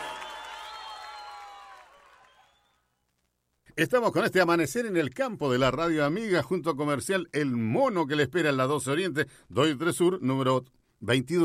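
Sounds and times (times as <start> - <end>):
crowd cheering and whistling: 0.0 - 2.9
applause: 0.0 - 3.0
speech: 3.8 - 11.4.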